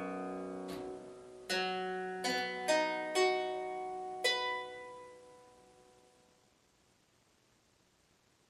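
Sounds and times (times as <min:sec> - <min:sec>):
harpsichord: 0:00.0 - 0:05.4.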